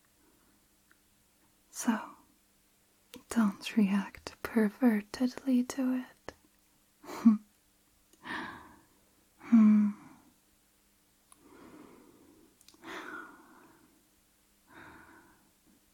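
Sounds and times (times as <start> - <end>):
speech: 1.8 - 2.1, 3.3 - 6.2, 7.2 - 7.4, 9.5 - 10.0
shallow rapid breathing: 8.2 - 8.9, 11.4 - 14.0.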